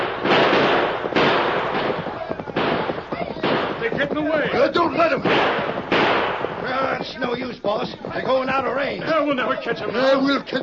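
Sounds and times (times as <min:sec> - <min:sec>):
loud gunshots fired at fleeing riders: 0:00.0 - 0:08.5
speech: 0:07.2 - 0:10.6.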